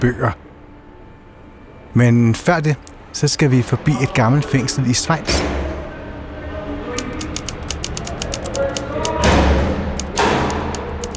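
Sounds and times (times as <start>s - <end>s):
speech: 0.0s - 0.4s, 2.0s - 5.6s
old mechanical typewriter clattering: 7.1s - 11.1s.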